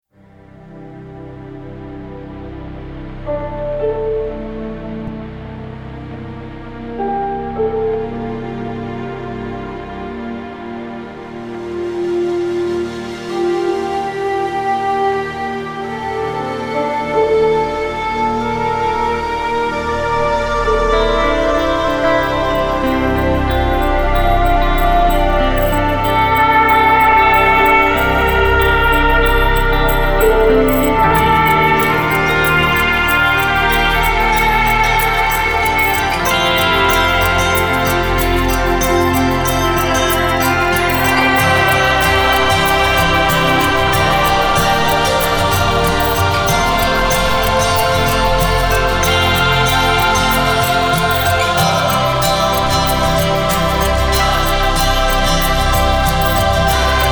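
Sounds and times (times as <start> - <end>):
epic modern orchestral music: 0.6 - 57.0.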